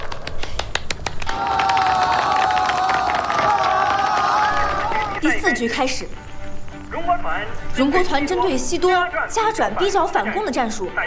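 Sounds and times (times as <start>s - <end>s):
thunderous applause: 0.0s - 5.3s
crowd cheering: 0.0s - 5.6s
speech: 5.6s - 6.3s, 7.1s - 11.0s.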